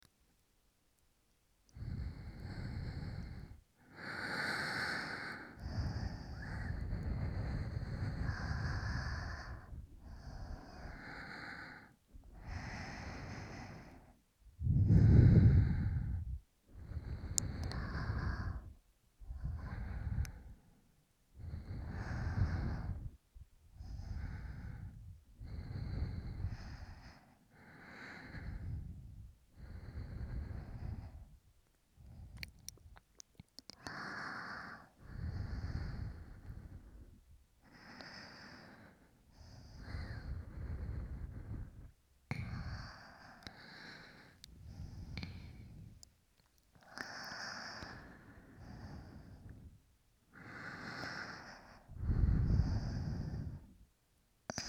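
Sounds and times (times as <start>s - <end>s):
person breathing in sleep: 1.7s - 31.4s, 33.8s - 46.0s, 46.8s - 53.8s, 54.5s - 54.6s.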